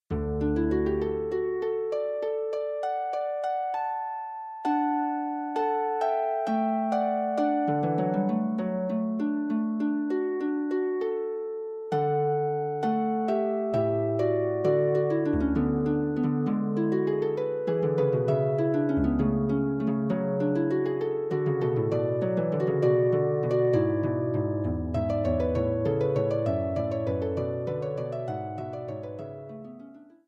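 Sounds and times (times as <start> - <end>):
harp prelude: 0.0 - 30.2.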